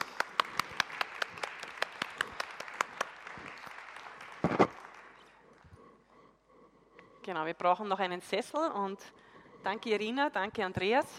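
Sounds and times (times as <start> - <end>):
audience applause: 0.0 - 5.4
speech: 7.3 - 11.1.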